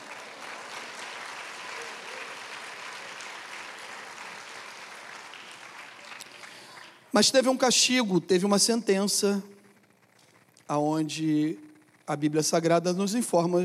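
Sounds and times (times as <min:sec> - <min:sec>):
crowd applauding: 0:00.0 - 0:07.3
speech: 0:07.2 - 0:09.5, 0:10.7 - 0:13.6.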